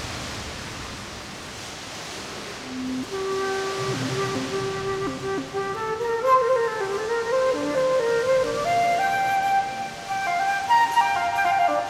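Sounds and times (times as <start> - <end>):
flute playing in a cave: 2.7 - 11.8.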